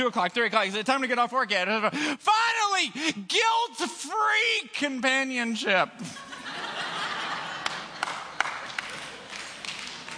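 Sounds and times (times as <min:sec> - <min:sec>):
speech: 0:00.0 - 0:06.2
laughter: 0:06.0 - 0:09.6
audience clapping: 0:07.2 - 0:10.1.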